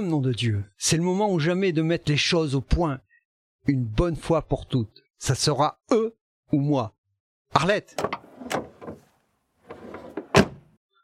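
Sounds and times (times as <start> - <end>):
speech: 0.0 - 3.0, 3.6 - 8.6
car door slamming shut: 10.2 - 10.7.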